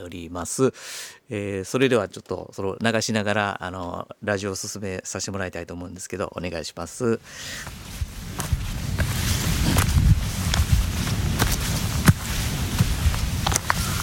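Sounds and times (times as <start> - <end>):
speech: 0.1 - 8.6
wind rumbling: 7.3 - 14.0
footsteps crunching on a trail climbing Mount Asahi in Uji: 7.6 - 14.0.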